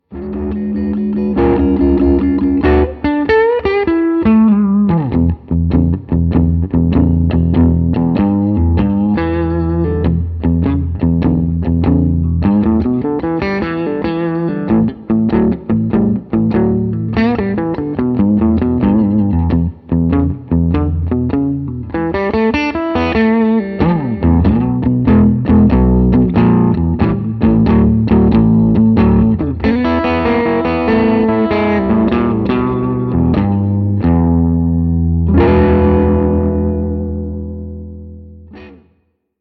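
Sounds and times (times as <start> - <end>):
blues music: 0.0 - 39.2.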